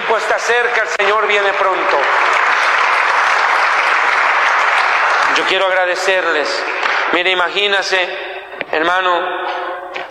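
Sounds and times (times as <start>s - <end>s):
congregation at a Spanish-language church service applauding: 0.0s - 7.9s
speech: 0.2s - 2.4s, 5.4s - 10.0s.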